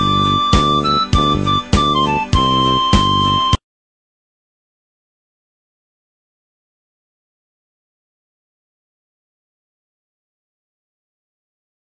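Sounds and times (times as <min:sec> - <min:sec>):
instrumental music beat: 0:00.0 - 0:03.6.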